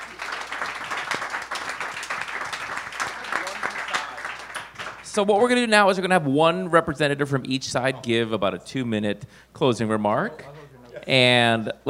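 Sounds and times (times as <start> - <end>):
round of applause: 0.0 - 5.2
speech: 5.2 - 11.8.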